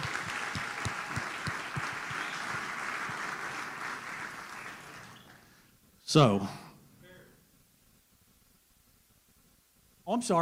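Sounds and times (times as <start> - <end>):
audience applause: 0.0 - 5.5
speech: 6.1 - 6.6, 10.2 - 10.3.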